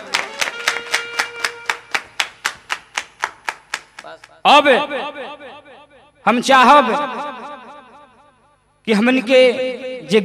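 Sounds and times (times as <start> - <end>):
audience clapping in a steady rhythm: 0.0 - 4.4
speech: 4.4 - 5.4, 6.2 - 7.3, 8.8 - 10.2.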